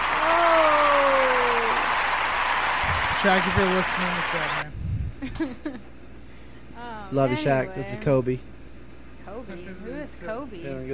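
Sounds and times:
clapping: 0:00.0 - 0:04.6
speech: 0:03.2 - 0:05.9, 0:07.1 - 0:08.5, 0:09.4 - 0:10.9.

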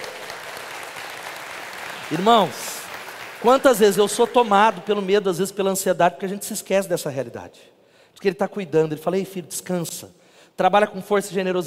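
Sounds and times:
audience applause: 0:00.0 - 0:04.9
speech: 0:02.1 - 0:02.7, 0:03.4 - 0:11.6.

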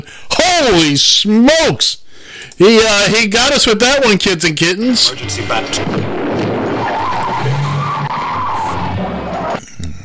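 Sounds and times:
speech: 0:00.0 - 0:02.0, 0:02.6 - 0:06.1
engine rumbling: 0:05.1 - 0:09.6
car tire screech as a car skids hard: 0:05.2 - 0:09.6.

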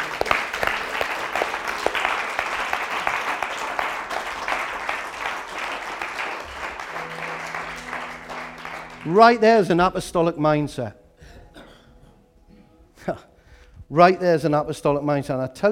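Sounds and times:
audience applause: 0:00.0 - 0:09.7
speech: 0:09.1 - 0:11.0, 0:13.0 - 0:13.3, 0:13.9 - 0:15.7.

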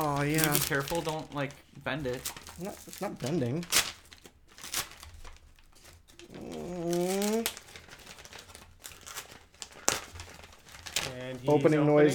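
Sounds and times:
speech: 0:00.0 - 0:03.9, 0:11.4 - 0:12.1
paper crinkling and tearing as a mail package is opened: 0:00.0 - 0:12.1.

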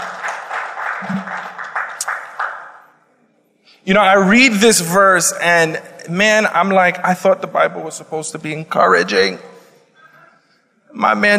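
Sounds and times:
audience applause: 0:00.0 - 0:02.8
speech: 0:01.0 - 0:01.5, 0:03.9 - 0:09.5, 0:10.9 - 0:11.3.

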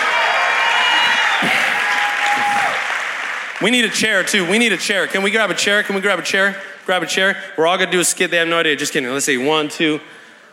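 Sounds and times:
crowd applauding: 0:00.0 - 0:05.2
speech: 0:03.6 - 0:10.2.

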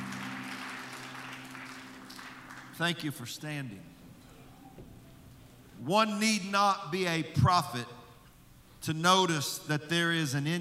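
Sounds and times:
audience hand clapping: 0:00.0 - 0:02.8
speech: 0:02.8 - 0:04.0, 0:05.8 - 0:08.0, 0:08.8 - 0:10.5.

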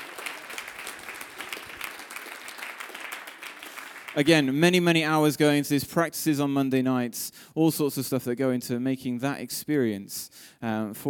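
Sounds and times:
audience applause for worship team: 0:00.0 - 0:04.5
speech: 0:04.2 - 0:11.0.

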